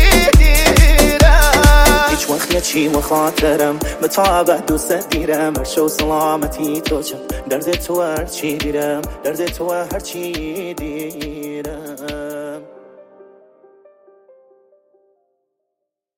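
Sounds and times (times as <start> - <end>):
remix music: 0.0 - 12.7.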